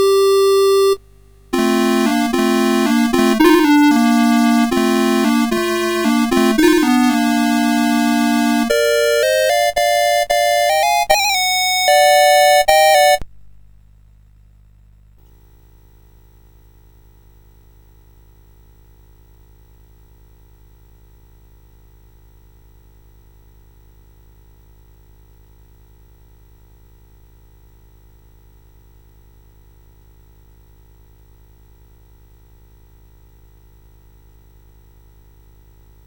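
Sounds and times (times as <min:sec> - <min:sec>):
dance tune on CSG8580R5: 0:00.0 - 0:01.0, 0:01.6 - 0:13.2.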